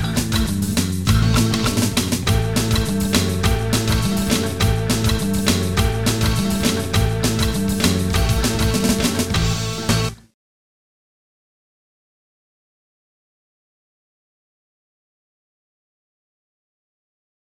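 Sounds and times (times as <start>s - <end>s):
big band blues music: 0.0s - 10.2s.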